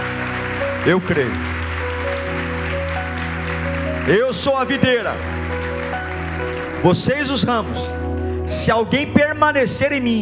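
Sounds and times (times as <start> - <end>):
audience applauding: 0.0 - 8.4
sustained keyboard chords: 0.0 - 10.2
speech: 0.8 - 1.6, 4.0 - 5.4, 6.4 - 10.2.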